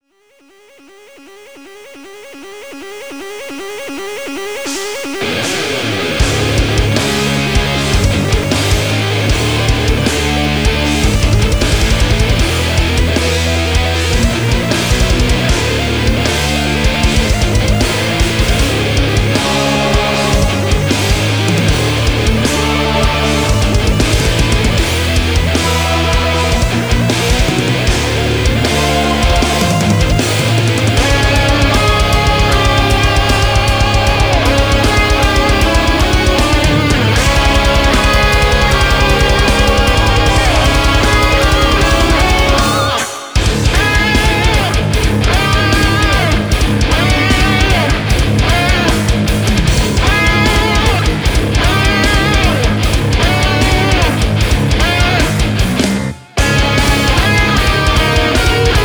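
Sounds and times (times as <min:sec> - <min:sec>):
metal music: 0:02.8 - 0:58.8.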